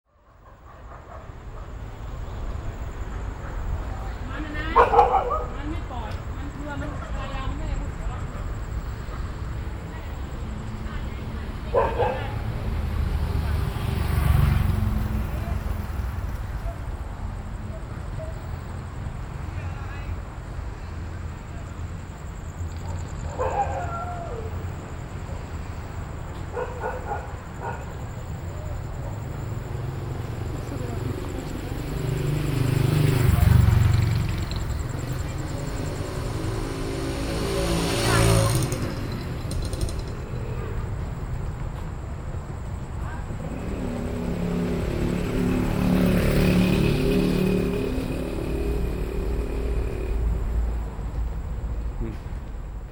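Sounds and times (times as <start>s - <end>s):
Bangkok street ambience: 0.0s - 52.8s.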